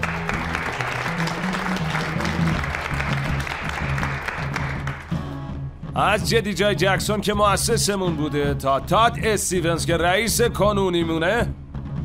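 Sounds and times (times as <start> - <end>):
audience applause: 0.0 - 5.2
speech: 6.0 - 11.6.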